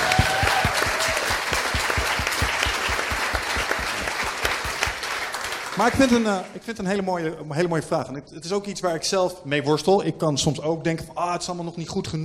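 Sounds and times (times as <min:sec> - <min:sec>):
audience applause: 0:00.0 - 0:06.6
speech: 0:05.8 - 0:12.2.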